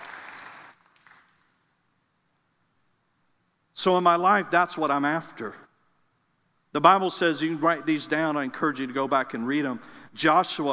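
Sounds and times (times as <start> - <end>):
audience applause: 0.0 - 1.4
speech: 3.8 - 5.6, 6.8 - 10.7.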